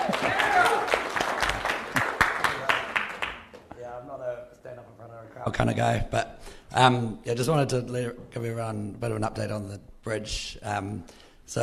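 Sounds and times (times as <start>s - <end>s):
audience applause: 0.0s - 3.6s
speech: 5.5s - 11.6s.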